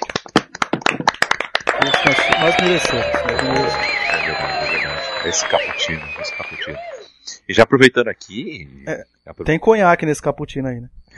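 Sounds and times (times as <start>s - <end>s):
hand clapping: 0.0s - 6.8s
laughter: 1.7s - 6.8s
speech: 2.4s - 6.9s, 7.5s - 11.1s.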